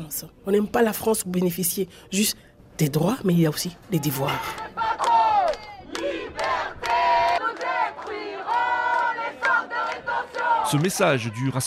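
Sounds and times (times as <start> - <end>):
speech: 0.0 - 4.8, 10.7 - 11.6
crowd of protesters chanting in unison: 4.0 - 11.4.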